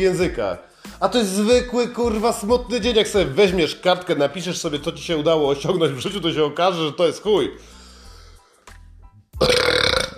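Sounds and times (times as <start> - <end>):
speech: 0.0 - 7.8, 9.4 - 9.6
burp: 9.4 - 10.1.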